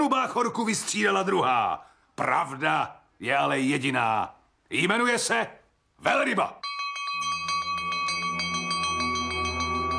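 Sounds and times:
speech: 0:00.0 - 0:06.7
ship's alarm bell ringing: 0:06.6 - 0:09.9.

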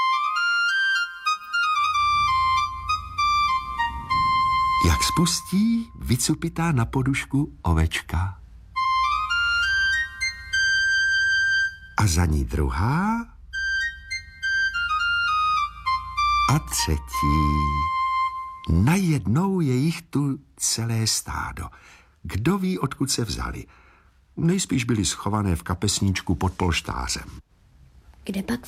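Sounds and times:
fairy-tale pipe whistling: 0:00.0 - 0:06.2, 0:08.8 - 0:12.2, 0:13.4 - 0:19.1
speech: 0:05.0 - 0:08.4, 0:12.0 - 0:13.3, 0:16.5 - 0:18.0, 0:18.7 - 0:23.8, 0:24.4 - 0:27.4, 0:28.2 - 0:28.6.

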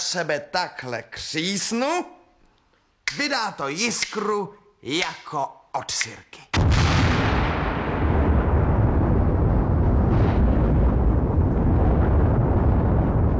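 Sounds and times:
speech: 0:00.1 - 0:02.2, 0:03.1 - 0:06.5
tobacco pipe exploding with a thunderous bang: 0:06.6 - 0:13.3
heavy rolling rumble: 0:07.7 - 0:13.3.

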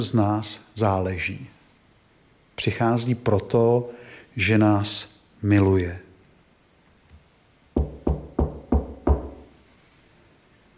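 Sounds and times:
speech: 0:00.0 - 0:01.6, 0:02.6 - 0:06.0
knocking: 0:07.8 - 0:09.5.

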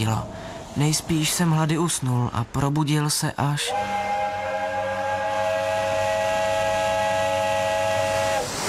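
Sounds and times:
speech: 0:00.0 - 0:04.0
steam whistle hooting in a chord of stacked tones: 0:03.7 - 0:08.5.

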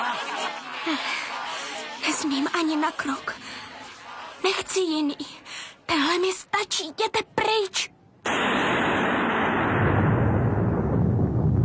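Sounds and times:
laughter: 0:00.0 - 0:04.7
speech: 0:00.9 - 0:01.2, 0:02.2 - 0:03.6, 0:04.4 - 0:07.9
thunder in a forest: 0:08.3 - 0:11.6.

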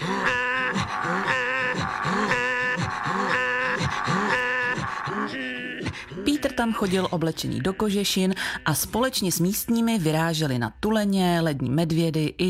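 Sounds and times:
Inuit throat singing: 0:00.0 - 0:08.0
speech: 0:06.6 - 0:12.4.

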